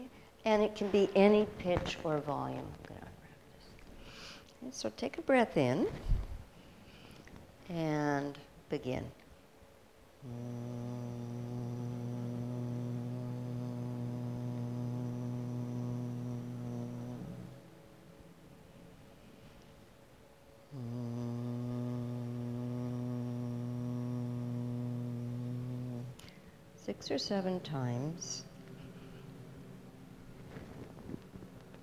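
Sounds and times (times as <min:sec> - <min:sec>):
Bhramari bee-breath humming: 0:00.0 - 0:04.3, 0:10.2 - 0:17.6, 0:20.7 - 0:29.2
speech: 0:00.4 - 0:03.0, 0:04.6 - 0:06.2, 0:07.7 - 0:09.2, 0:10.2 - 0:11.2, 0:27.0 - 0:28.5.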